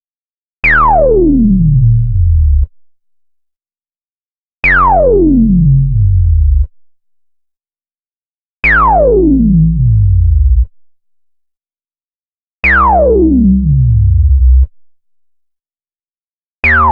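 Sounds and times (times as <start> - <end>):
synthesizer bass: 0.6 - 2.7, 4.7 - 6.7, 8.6 - 10.7, 12.7 - 14.7, 16.6 - 16.9.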